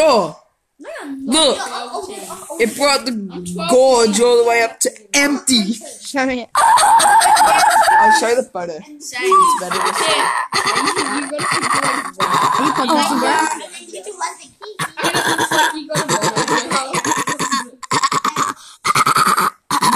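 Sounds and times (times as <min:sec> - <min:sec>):
speech: 0:00.1 - 0:17.0
person beatboxing: 0:09.6 - 0:13.1, 0:14.8 - 0:19.9.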